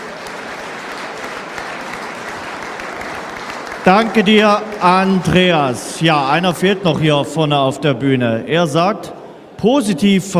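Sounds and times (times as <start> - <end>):
audience applause: 0.0 - 5.7
speech: 3.8 - 10.3.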